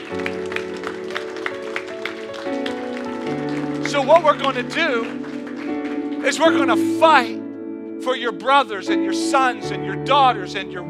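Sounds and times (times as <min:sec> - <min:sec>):
audience cheering and applauding: 0:00.0 - 0:06.9
speech: 0:04.0 - 0:05.2, 0:06.2 - 0:07.4, 0:08.0 - 0:10.8.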